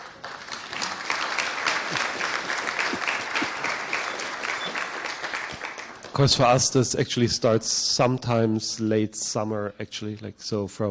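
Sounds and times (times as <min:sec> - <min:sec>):
crowd clapping: 0:00.0 - 0:06.8
speech: 0:06.2 - 0:10.8.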